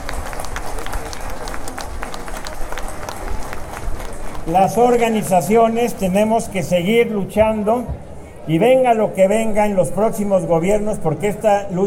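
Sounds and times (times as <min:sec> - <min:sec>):
crowd clapping: 0:00.0 - 0:05.4
murmur of voices: 0:00.0 - 0:11.8
speech: 0:04.5 - 0:11.8.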